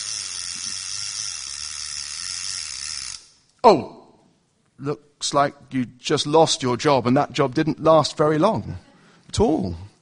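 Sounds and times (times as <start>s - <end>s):
ratchet mechanism whirring: 0.0s - 3.5s
speech: 3.6s - 4.0s, 4.8s - 9.9s.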